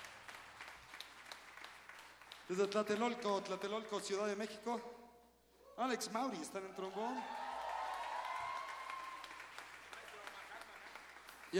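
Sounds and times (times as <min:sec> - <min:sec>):
audience applause: 0:00.0 - 0:02.7, 0:06.8 - 0:11.5
speech: 0:02.5 - 0:05.0, 0:05.8 - 0:07.4.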